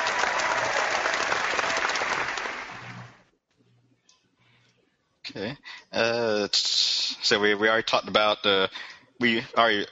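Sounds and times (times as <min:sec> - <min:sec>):
audience applause: 0:00.0 - 0:03.2
speech: 0:05.3 - 0:09.9.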